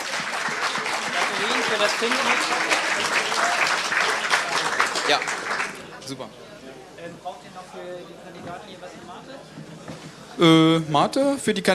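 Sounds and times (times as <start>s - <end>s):
audience applause: 0.0s - 6.0s
speech: 1.4s - 3.7s, 5.1s - 5.4s, 6.1s - 6.4s, 7.1s - 11.7s.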